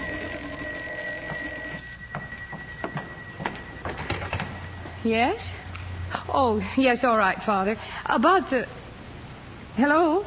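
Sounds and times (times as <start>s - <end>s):
telephone ringing with rattling bell: 0.0s - 5.3s
hum: 0.0s - 10.2s
speech: 5.0s - 5.6s, 6.2s - 8.8s, 9.8s - 10.2s.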